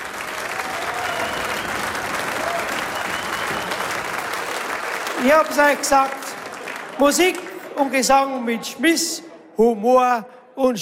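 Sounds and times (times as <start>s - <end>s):
audience applause: 0.0s - 8.6s
faint cheering voices: 0.1s - 4.5s
speech: 5.2s - 6.2s, 7.0s - 10.7s.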